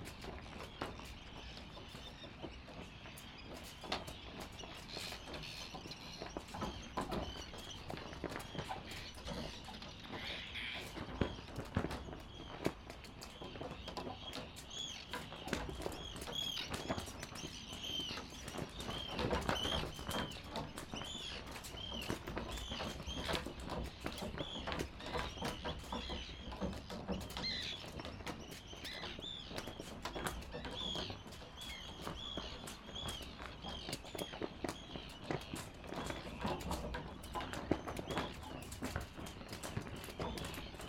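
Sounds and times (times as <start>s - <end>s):
flag flapping in wind: 0.0s - 40.8s.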